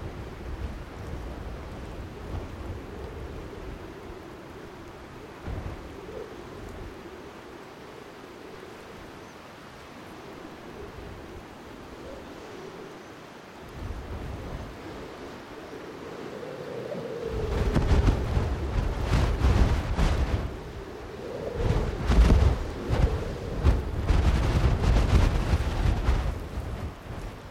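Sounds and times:
blustery open wind in a grass field: 0.0s - 27.4s.

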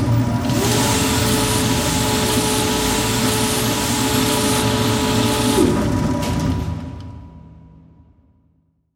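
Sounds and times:
sci-fi machine motor whine: 0.2s - 7.2s.

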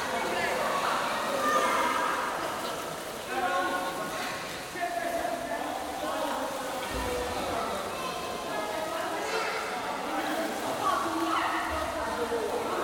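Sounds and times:
atmosphere in crowded indoor pool: 0.0s - 12.8s
swimming in crowded indoor pool: 0.0s - 12.8s.

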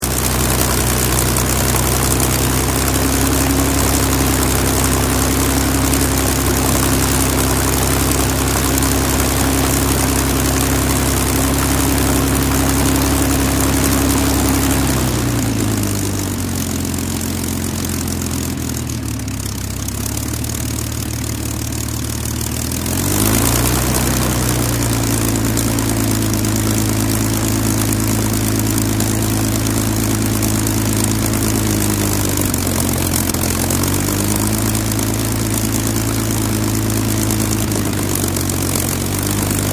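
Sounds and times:
restored Spitfire airplane engine with varied idle: 0.0s - 39.7s.

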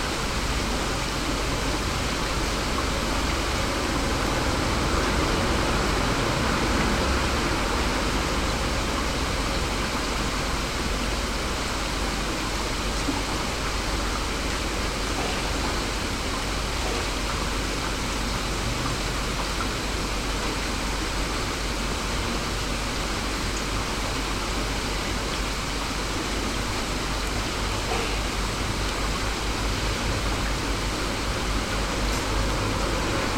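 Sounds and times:
rain in an inner yard: 0.0s - 33.3s.

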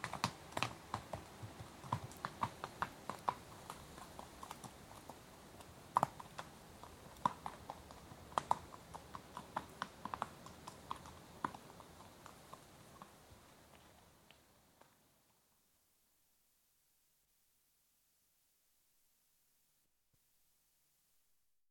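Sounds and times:
one horse approaching at walk and walking right to left: 0.0s - 15.0s.

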